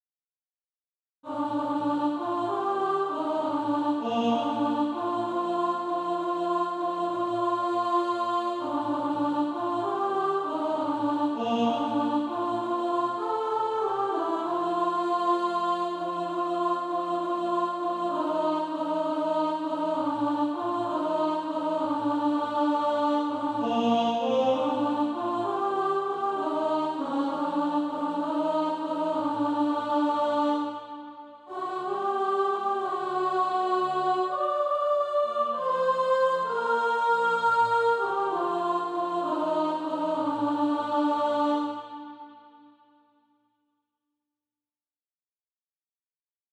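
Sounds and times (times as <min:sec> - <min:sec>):
alto voice singing SATB practice music: 0:01.2 - 0:42.6.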